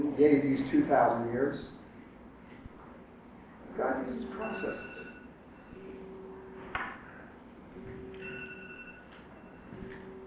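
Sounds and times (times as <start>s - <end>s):
speech: 0.2s - 1.8s, 3.8s - 4.9s
timer going off: 4.3s - 6.4s, 7.8s - 10.2s.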